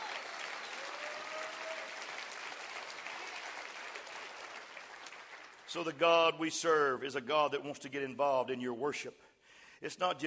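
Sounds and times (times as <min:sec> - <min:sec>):
audience clapping: 0:00.0 - 0:06.1
speech: 0:05.7 - 0:10.2.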